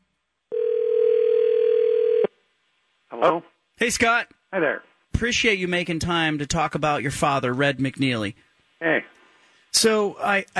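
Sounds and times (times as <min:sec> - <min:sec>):
telephone dial tone for an outgoing call: 0:00.5 - 0:02.3
speech: 0:03.2 - 0:10.5.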